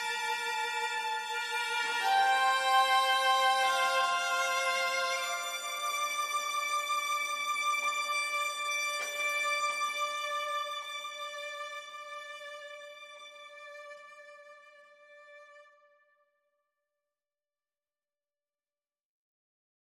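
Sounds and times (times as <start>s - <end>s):
strings: 0.0s - 15.8s.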